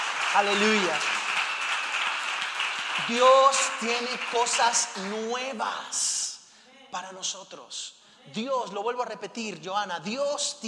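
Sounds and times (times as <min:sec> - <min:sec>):
audience applauding: 0:00.0 - 0:05.6
speech: 0:00.3 - 0:01.1, 0:03.0 - 0:06.2, 0:06.9 - 0:10.6.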